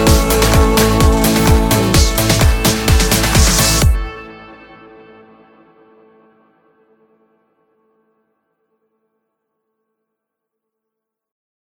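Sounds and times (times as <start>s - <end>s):
EDM track: 0.0s - 5.7s.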